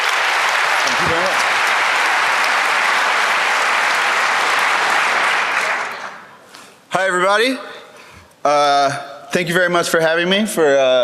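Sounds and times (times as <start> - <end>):
audience applause: 0.0 - 6.5
speech: 7.0 - 7.7, 8.4 - 11.0.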